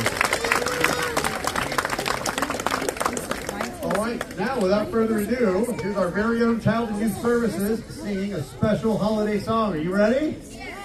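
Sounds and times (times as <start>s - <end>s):
crowd applause: 0.0s - 4.8s
voices and cheers: 0.0s - 8.6s
speech: 4.5s - 10.6s.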